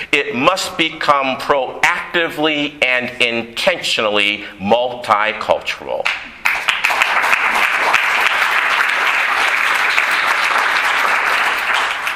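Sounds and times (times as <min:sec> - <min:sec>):
speech: 0:00.1 - 0:06.4
audience clapping: 0:06.0 - 0:12.1.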